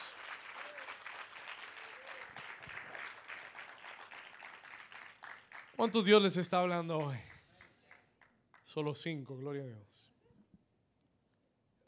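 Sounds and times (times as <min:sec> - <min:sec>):
audience applauding: 0:00.0 - 0:08.8
speech: 0:05.8 - 0:07.3, 0:08.8 - 0:10.1.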